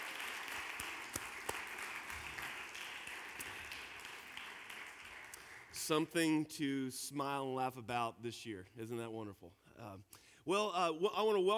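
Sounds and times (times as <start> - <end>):
audience applause: 0.0 - 5.8
speech: 5.9 - 11.5.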